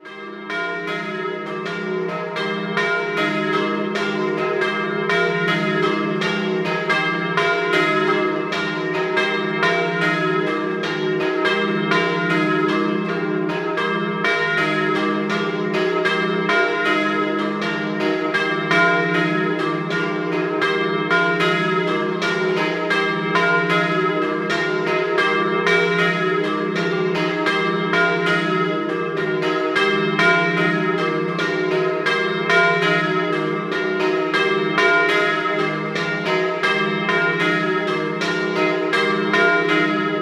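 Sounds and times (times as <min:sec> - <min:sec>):
double bells ringing: 0:00.0 - 0:40.2.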